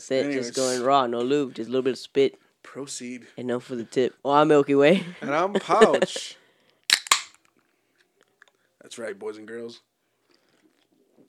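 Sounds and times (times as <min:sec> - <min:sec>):
speech: 0:00.0 - 0:06.4, 0:08.8 - 0:09.9
beer can opening without hiss: 0:06.9 - 0:07.4.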